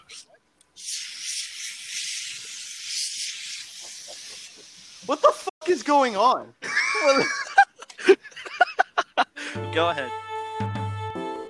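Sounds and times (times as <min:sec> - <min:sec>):
compressed air canister spraying at keyboard: 0:00.8 - 0:05.5
speech: 0:05.1 - 0:07.5, 0:09.8 - 0:10.2
laughter: 0:06.6 - 0:09.4.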